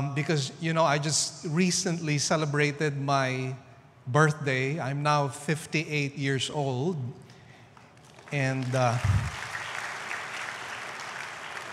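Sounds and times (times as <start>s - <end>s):
speech: 0.0s - 7.3s, 8.3s - 9.4s
audience clapping hands: 7.7s - 11.7s.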